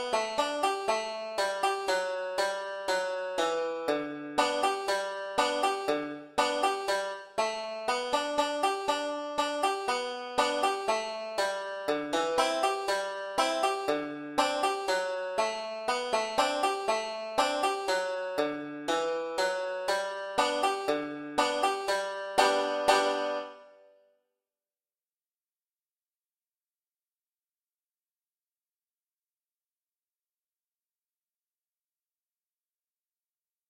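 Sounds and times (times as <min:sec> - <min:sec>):
slow banjo solo for practice: 0:00.0 - 0:23.8.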